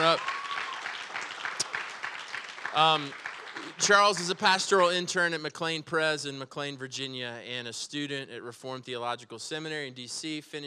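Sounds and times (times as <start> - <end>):
person whooping: 0.0 - 0.8
crowd applause: 0.0 - 4.9
speech: 2.8 - 10.6.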